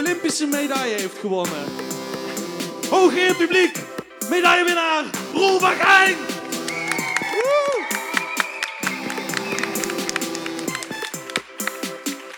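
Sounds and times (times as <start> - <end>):
speech: 0.1 - 2.0, 2.9 - 6.3
audience applause and cheering: 6.2 - 12.3.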